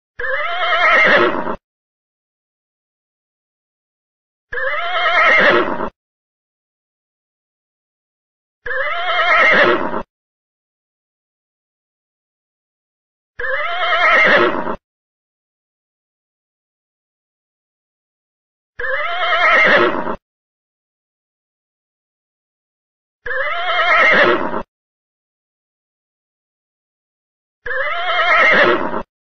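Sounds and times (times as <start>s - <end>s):
horse neighing: 0.2s - 1.6s, 4.5s - 5.9s, 8.6s - 10.1s, 13.4s - 14.8s, 18.8s - 20.2s, 23.3s - 24.7s, 27.6s - 29.1s.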